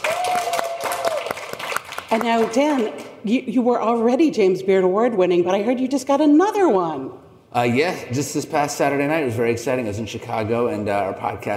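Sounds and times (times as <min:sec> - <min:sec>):
audience applause: 0:00.0 - 0:03.1
speech: 0:02.1 - 0:11.5.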